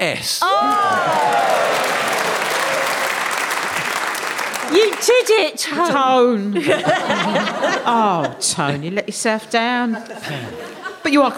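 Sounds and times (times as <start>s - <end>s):
speech: 0.0s - 2.4s, 4.7s - 11.3s
audience applause: 0.4s - 5.5s
laughter: 5.6s - 8.8s, 9.9s - 11.3s.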